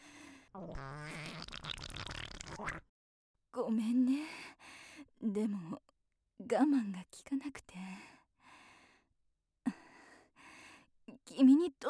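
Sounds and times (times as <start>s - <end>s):
speech: 0.6s - 1.8s, 2.6s - 2.9s, 3.6s - 4.5s, 5.2s - 5.8s, 6.4s - 8.1s, 11.4s - 11.8s
fart: 0.6s - 2.8s.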